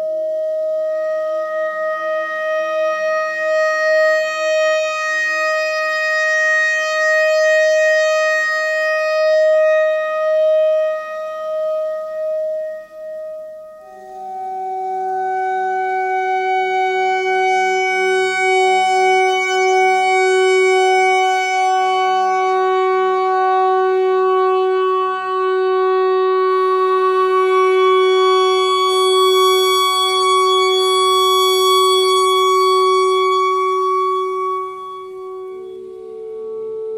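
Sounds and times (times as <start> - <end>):
clarinet notes: 0.0 - 36.9.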